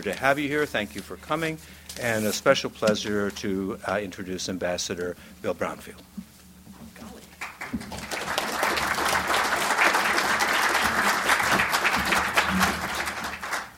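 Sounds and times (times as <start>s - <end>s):
speech: 0.0s - 6.2s, 7.7s - 8.0s
audience applause: 7.4s - 13.7s.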